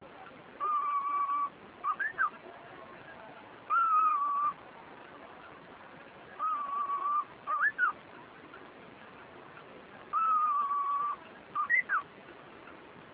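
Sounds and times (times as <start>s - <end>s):
bush warbler singing: 0.6s - 2.4s, 3.7s - 4.6s, 6.4s - 8.0s, 10.1s - 12.1s.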